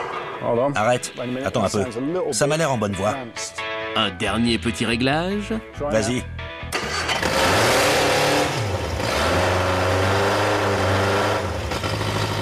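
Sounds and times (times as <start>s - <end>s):
speech: 0.4s - 7.0s
car engine running and revving: 6.7s - 12.3s.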